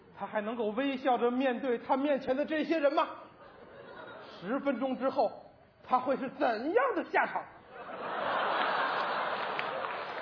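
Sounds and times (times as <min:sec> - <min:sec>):
speech: 0:00.2 - 0:03.3, 0:04.4 - 0:07.6
laughter: 0:03.4 - 0:04.5, 0:07.7 - 0:10.2
audience applause after a xiangsheng crosstalk comedy performance: 0:08.2 - 0:10.2.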